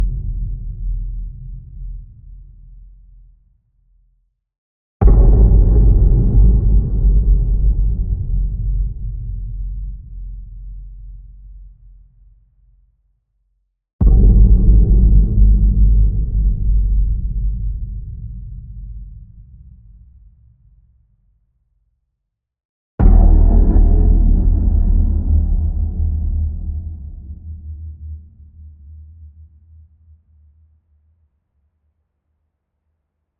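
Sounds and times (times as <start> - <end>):
fat drum booms: 5.0 - 10.1, 14.0 - 18.8, 23.0 - 27.1.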